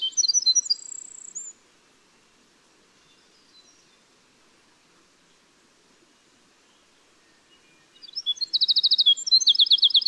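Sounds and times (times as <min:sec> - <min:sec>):
winter wren singing: 0:00.0 - 0:01.6, 0:07.9 - 0:10.0.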